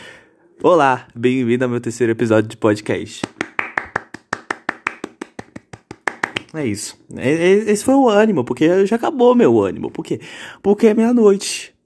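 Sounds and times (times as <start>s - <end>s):
speech: 0.6s - 3.5s, 6.5s - 11.8s
clapping sound effect set off by a button: 3.2s - 6.5s.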